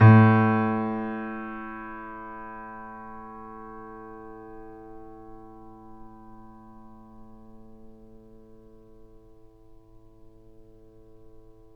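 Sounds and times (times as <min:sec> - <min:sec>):
grand piano A1 note played mezzo-piano: 0:00.0 - 0:03.2.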